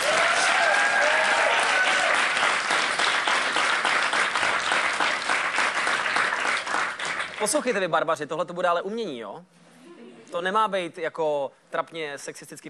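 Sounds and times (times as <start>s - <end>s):
faint whistles and cheers: 0.0s - 2.2s
audience clapping: 0.0s - 7.8s
speech: 7.4s - 9.6s, 10.3s - 12.6s.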